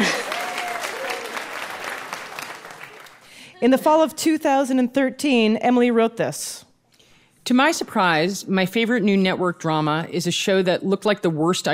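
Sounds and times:
clapping: 0.0s - 3.3s
speech: 3.6s - 6.7s, 7.5s - 11.7s.

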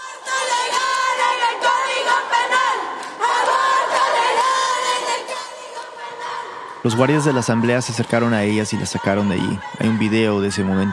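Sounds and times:
crowd of women chanting in unison: 0.0s - 10.9s
women clapping: 2.5s - 6.0s
speech: 6.8s - 10.9s.

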